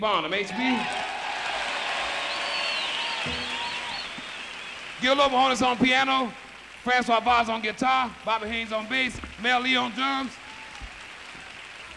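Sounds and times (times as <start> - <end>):
speech: 0.0 - 1.1, 3.2 - 3.6, 5.0 - 10.4
audience applause: 0.0 - 11.9
whistle-like cheers: 0.4 - 6.3, 9.9 - 11.9.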